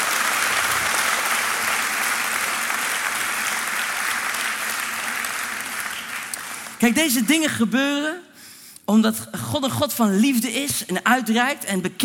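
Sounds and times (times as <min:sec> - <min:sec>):
crowd applause: 0:00.0 - 0:06.8
speech: 0:06.8 - 0:08.2, 0:08.9 - 0:12.0.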